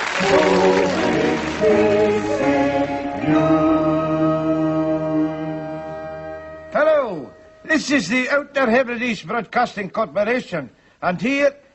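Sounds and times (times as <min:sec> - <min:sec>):
news jingle of layered sustained harmonic tones: 0:00.2 - 0:08.9
speech: 0:07.9 - 0:11.6.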